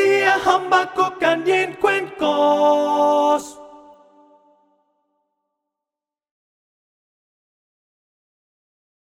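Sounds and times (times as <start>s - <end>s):
alto voice singing: 0.0s - 4.7s.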